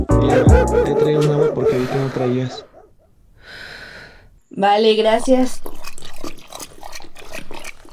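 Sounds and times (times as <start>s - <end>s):
laughter: 0.1s - 2.7s
speech: 4.6s - 5.9s
dog lapping drinking water: 5.3s - 7.9s.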